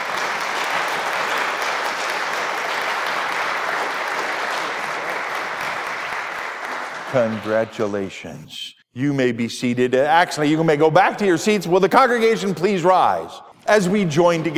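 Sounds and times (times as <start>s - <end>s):
audience applause: 0.0s - 8.1s
speech: 7.1s - 14.5s.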